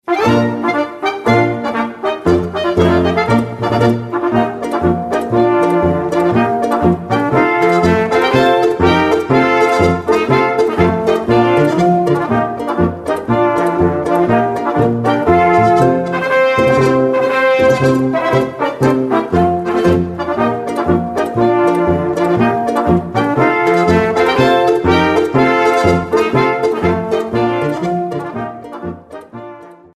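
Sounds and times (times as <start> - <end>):
march music: 0.0 - 29.9.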